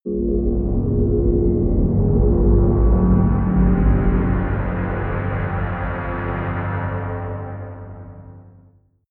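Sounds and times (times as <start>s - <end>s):
large deep hollow drone: 0.1s - 8.8s.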